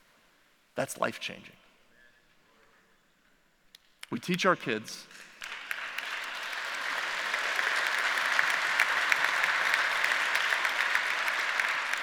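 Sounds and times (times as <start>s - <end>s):
speech: 0.8s - 1.6s, 4.1s - 5.6s
audience clapping: 5.4s - 12.0s.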